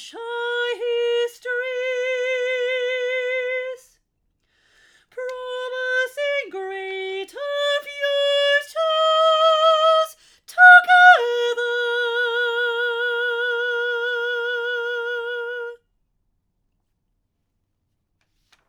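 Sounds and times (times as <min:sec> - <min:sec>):
soprano singing a verse: 0:00.0 - 0:04.0, 0:05.1 - 0:15.8.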